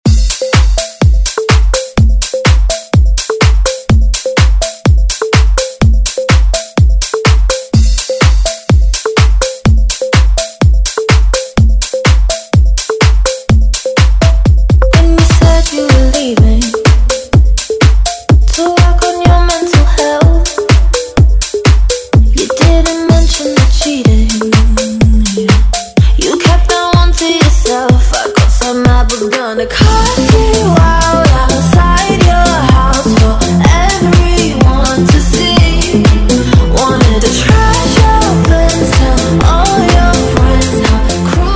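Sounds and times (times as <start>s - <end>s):
house music intro: 0.0s - 29.2s, 29.8s - 41.5s.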